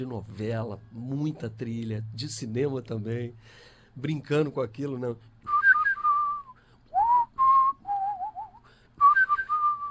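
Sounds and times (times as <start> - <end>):
speech: 0.0 - 5.3
person whistling a melody: 5.4 - 9.8.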